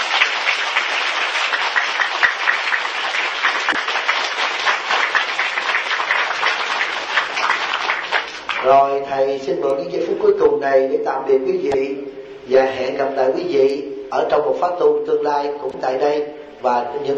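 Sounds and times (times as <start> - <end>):
audience applause: 0.0 - 8.8
speech: 8.7 - 17.1.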